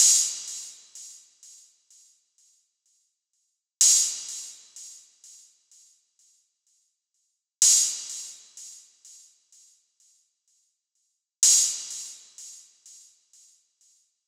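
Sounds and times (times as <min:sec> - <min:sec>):
hi-hat: 0:00.0 - 0:14.2.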